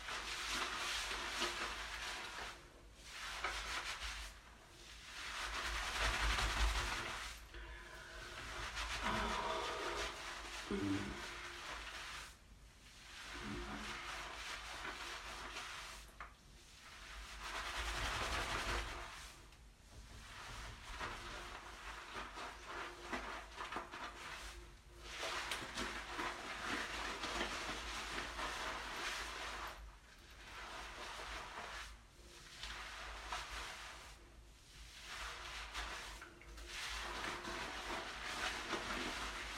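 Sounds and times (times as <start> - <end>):
shower water running: 0.0 - 39.5
person moaning: 9.1 - 11.2.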